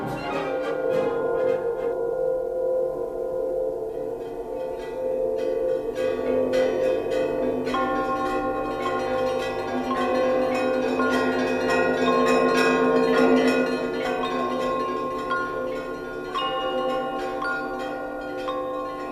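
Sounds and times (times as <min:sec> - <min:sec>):
church bells ringing: 0:00.0 - 0:19.1.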